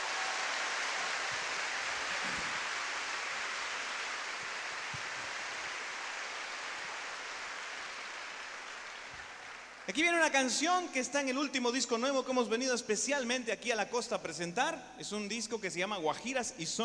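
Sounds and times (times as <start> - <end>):
crowd applauding: 0.0 - 10.5
speech: 9.9 - 16.8.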